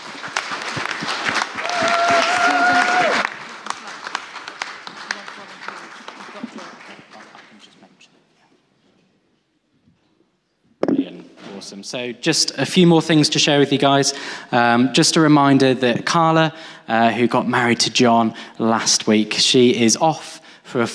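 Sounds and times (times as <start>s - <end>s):
audience applause: 0.0s - 7.8s
speech: 11.9s - 20.9s.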